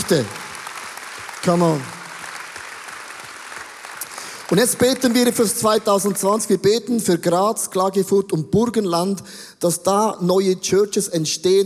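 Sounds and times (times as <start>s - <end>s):
audience applause: 0.0s - 6.2s
speech: 0.1s - 0.4s, 1.4s - 2.0s, 4.5s - 11.6s.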